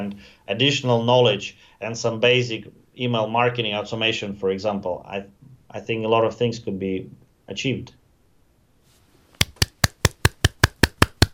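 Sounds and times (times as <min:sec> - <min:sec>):
speech: 0:00.0 - 0:08.0
single person clapping hands: 0:09.4 - 0:11.3.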